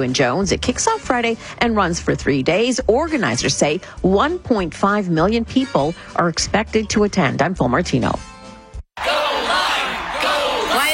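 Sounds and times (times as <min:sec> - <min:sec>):
speech: 0:00.0 - 0:08.3
group of people cheering and whooping for a fruit: 0:09.0 - 0:10.9.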